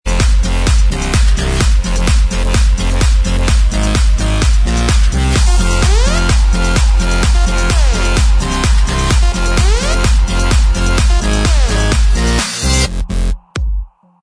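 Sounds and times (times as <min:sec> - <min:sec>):
instrumental music: 0:00.1 - 0:14.1.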